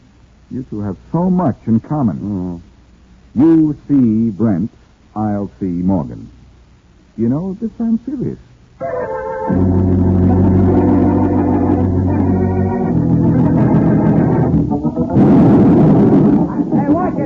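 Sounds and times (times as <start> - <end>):
speech: 0.5 - 2.7, 3.3 - 6.4, 7.2 - 10.4
sustained droning tone: 9.5 - 17.2
blasting charge explosion at a building site foundation: 9.6 - 17.2.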